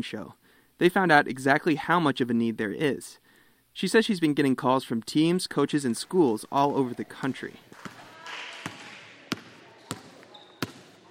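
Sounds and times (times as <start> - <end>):
speech: 0.0 - 3.2, 3.8 - 7.9
basketballs bouncing during girls' team practice in home gym: 6.6 - 11.0.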